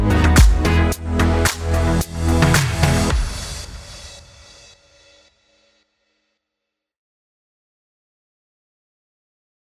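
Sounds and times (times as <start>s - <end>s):
pop music in E major at 110 BPM: 0.0s - 4.5s.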